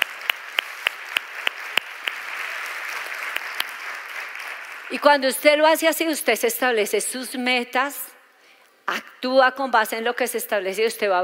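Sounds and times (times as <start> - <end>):
audience applause: 0.0 - 5.0
speech: 4.9 - 8.1, 8.9 - 11.2.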